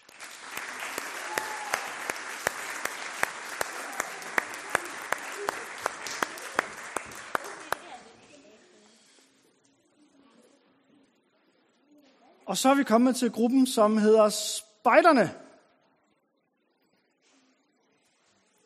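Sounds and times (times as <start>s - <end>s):
audience applause at a Danish scouts' ceremony: 0.0s - 8.0s
speech: 12.5s - 15.4s.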